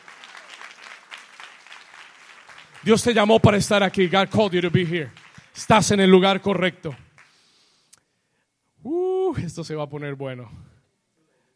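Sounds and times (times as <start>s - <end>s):
audience applause: 0.0s - 6.2s
speech: 2.8s - 7.0s, 9.3s - 10.7s.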